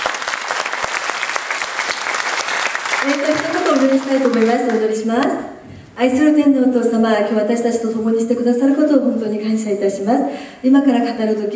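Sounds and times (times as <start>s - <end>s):
audience clapping: 0.0s - 5.3s
speech: 3.0s - 11.5s.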